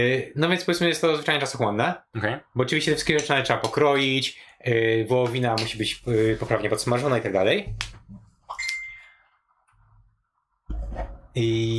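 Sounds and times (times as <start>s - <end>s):
speech: 0.0s - 8.2s, 11.0s - 11.7s
notification beep from internet device: 8.5s - 9.2s.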